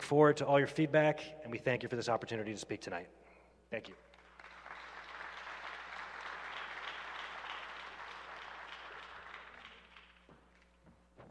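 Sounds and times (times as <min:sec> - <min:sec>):
speech: 0:00.1 - 0:04.1
audience applause: 0:04.1 - 0:10.8.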